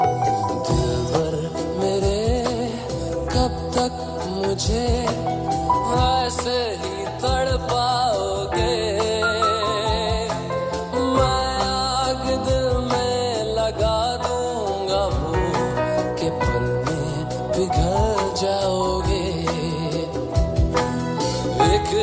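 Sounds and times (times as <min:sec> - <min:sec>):
sad song ringtone: 0:00.0 - 0:22.0.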